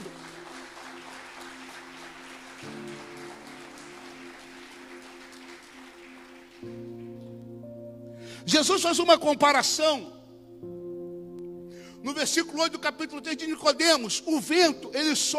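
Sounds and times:
audience applauding: 0.0s - 7.3s
sustained keyboard chords: 0.0s - 15.3s
speech: 8.4s - 10.2s, 12.2s - 15.3s.

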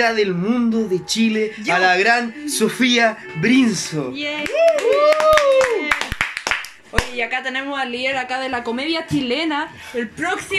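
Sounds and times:
speech: 0.0s - 5.5s, 7.1s - 10.5s
applause: 4.4s - 7.2s.

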